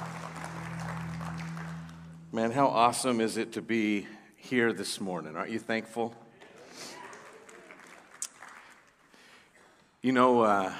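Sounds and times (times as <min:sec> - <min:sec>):
crowd applauding: 0:00.0 - 0:02.6, 0:06.3 - 0:09.8
speech: 0:02.3 - 0:06.2, 0:10.0 - 0:10.7.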